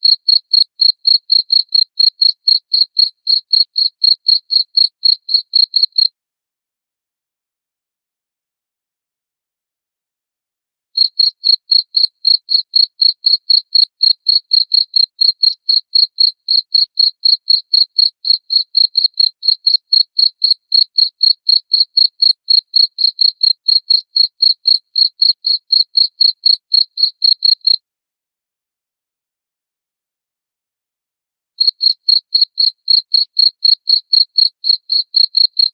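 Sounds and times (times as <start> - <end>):
cricket chirping: 0.0 - 6.1, 11.0 - 27.8, 31.6 - 35.7.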